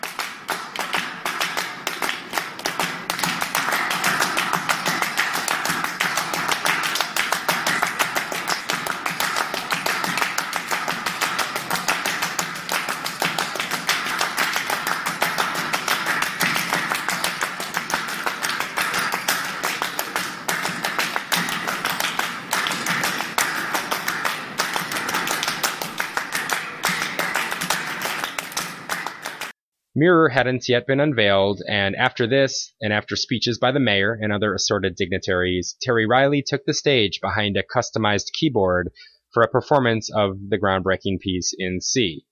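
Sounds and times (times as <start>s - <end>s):
rhythmic hand clapping by several musicians: 0.0s - 29.6s
speech: 30.0s - 42.2s.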